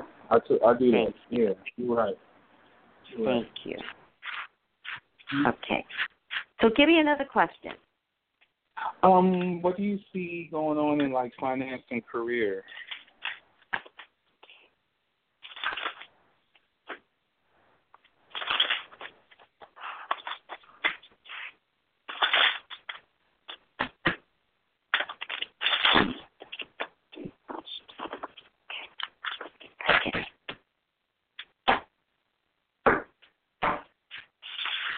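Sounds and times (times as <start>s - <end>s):
speech: 0.3s - 2.3s, 3.1s - 4.0s, 5.3s - 7.8s, 8.8s - 12.9s
cards being shuffled and pulled for a psychic reading: 3.6s - 6.6s, 12.7s - 14.1s, 15.4s - 16.1s, 18.3s - 24.2s, 24.9s - 26.9s, 33.6s - 34.9s.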